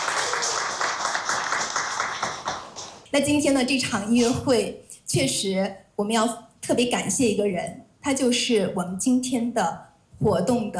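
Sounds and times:
audience applause: 0:00.0 - 0:03.0
speech: 0:03.1 - 0:10.7.

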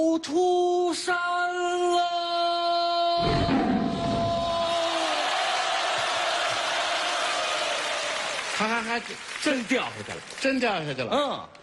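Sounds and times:
speech: 0:00.0 - 0:02.2, 0:08.6 - 0:11.6
live comedy audience cheering and shouting: 0:03.2 - 0:09.6.

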